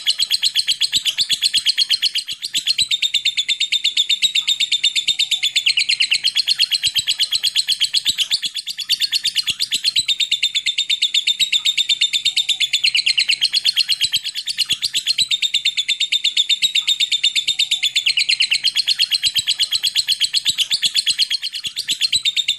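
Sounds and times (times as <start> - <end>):
lovebird long chattering call: 0.0 - 22.5.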